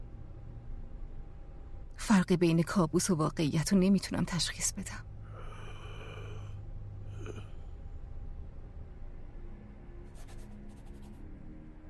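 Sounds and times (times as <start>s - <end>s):
low noise: 0.0s - 11.8s
speech: 2.1s - 5.1s
pencil drawing on paper: 10.1s - 11.2s.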